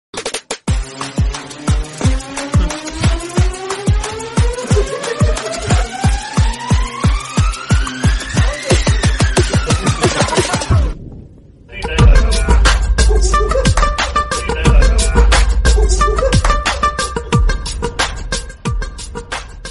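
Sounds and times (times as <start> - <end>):
Telugu movie background music ringtone: 0.2 - 11.0, 11.8 - 19.6
laughter: 2.4 - 3.2, 4.0 - 6.5, 8.4 - 11.0.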